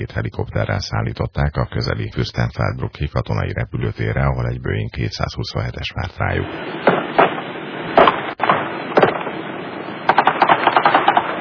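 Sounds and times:
speech: 0.0 - 7.3
recording hiss: 0.0 - 11.3
gunfire at an airport: 6.8 - 9.4, 10.1 - 11.3.

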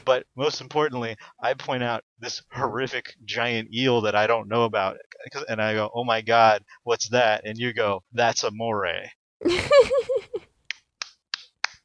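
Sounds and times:
speech: 0.0 - 10.1
hand claps: 10.7 - 11.8.

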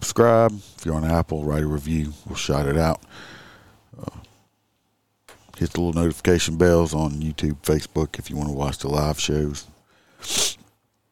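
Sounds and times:
speech: 0.1 - 3.4, 4.0 - 4.2, 5.6 - 10.6
person sniffling from allergies: 10.1 - 10.7.

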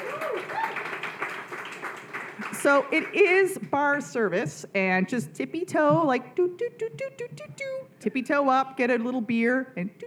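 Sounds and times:
brief whoops: 0.0 - 1.0
crowd applauding: 0.0 - 3.2
speech: 2.6 - 10.0.

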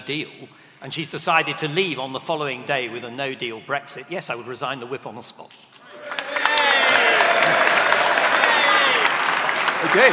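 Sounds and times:
speech: 0.0 - 6.2, 9.8 - 10.1
audience cheering: 5.9 - 10.1.

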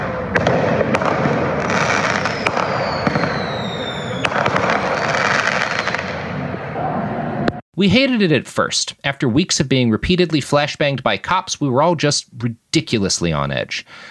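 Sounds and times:
fireworks mortars exploding: 0.0 - 6.6
crowd noise: 0.0 - 8.3
speech: 7.8 - 14.0.

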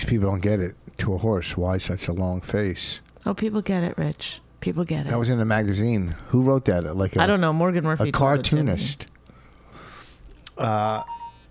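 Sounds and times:
speech: 0.1 - 9.1, 10.6 - 11.2
iPhone text message alert tone: 11.0 - 11.4.

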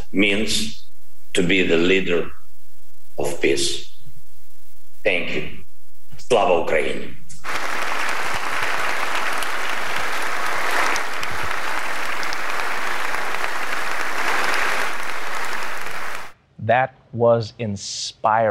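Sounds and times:
speech: 0.1 - 2.4, 3.2 - 3.9, 5.0 - 5.6, 6.2 - 7.7, 16.7 - 18.4
audience applause: 7.4 - 16.4.

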